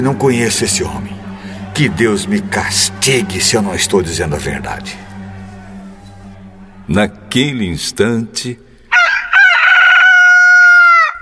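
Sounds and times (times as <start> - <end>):
speech: 0.0 - 1.2, 1.8 - 5.1, 6.9 - 8.7
rooster crowing: 4.9 - 6.7, 8.9 - 11.2.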